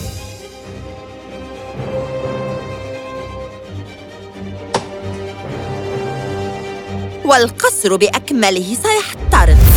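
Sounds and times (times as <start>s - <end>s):
wood of a palace being chopped into pieces: 4.7s - 5.0s
speech: 7.3s - 9.6s.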